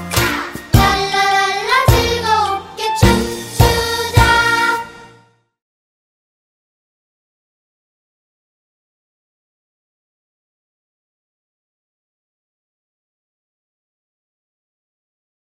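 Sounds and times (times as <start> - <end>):
children's melody: 0.0 - 5.3.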